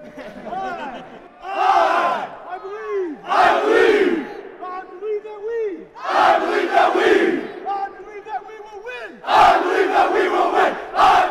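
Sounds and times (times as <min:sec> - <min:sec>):
laughter: 0:00.0 - 0:02.0
cadets shouting a cheer: 0:01.4 - 0:04.4, 0:06.0 - 0:07.7, 0:09.2 - 0:11.2.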